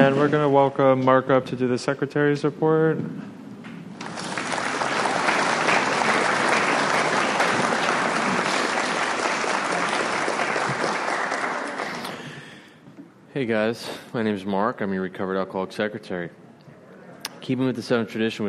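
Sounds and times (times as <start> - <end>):
speech: 0.1 - 3.4, 13.4 - 16.4, 17.4 - 18.4
audience applause at a recovery group meeting: 4.0 - 12.4.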